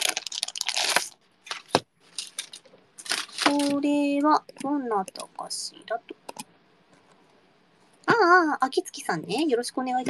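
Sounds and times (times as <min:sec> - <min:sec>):
brown paper envelope crinkling and rustling as it is taken out: 0:00.0 - 0:03.9
speech: 0:03.5 - 0:06.2, 0:08.1 - 0:10.0.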